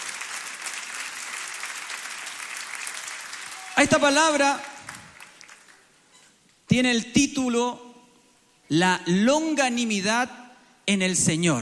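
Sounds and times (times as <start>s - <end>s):
audience applauding: 0.0s - 5.9s
speech: 3.8s - 4.7s, 6.7s - 7.8s, 8.7s - 11.5s.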